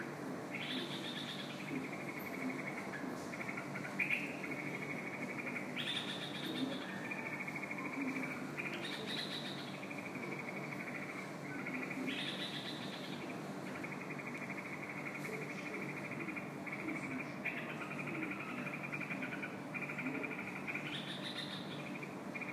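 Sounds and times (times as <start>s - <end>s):
bulbul chirping calls: 0.5s - 22.5s.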